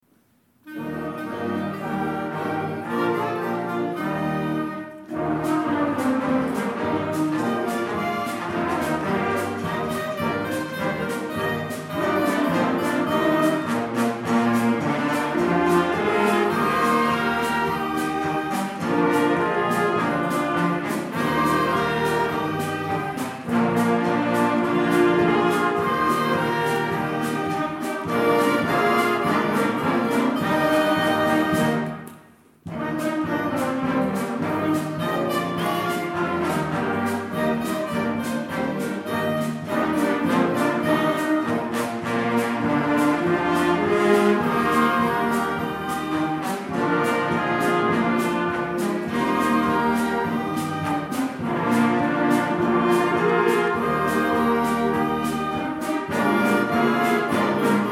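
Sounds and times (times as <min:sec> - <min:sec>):
happy polka music: 0:00.0 - 0:57.9.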